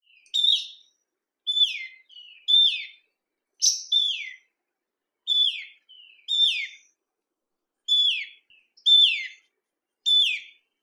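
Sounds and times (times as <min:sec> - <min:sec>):
Meguro bird calling: 0:00.0 - 0:03.0, 0:03.6 - 0:04.5, 0:05.3 - 0:06.9, 0:07.9 - 0:10.6.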